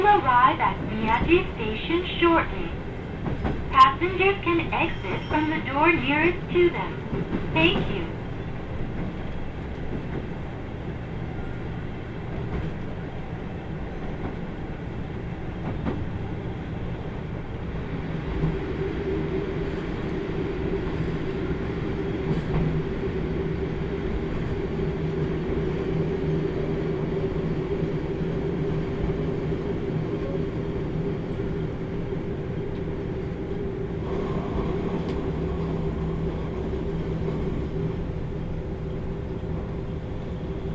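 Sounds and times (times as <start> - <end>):
limited express train running on rails: 0.0 - 40.7
speech: 0.6 - 2.8, 3.4 - 8.2.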